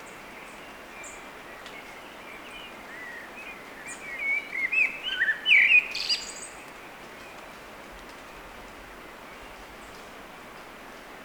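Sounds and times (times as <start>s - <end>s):
Eurasian blackbird song: 0.0s - 6.6s.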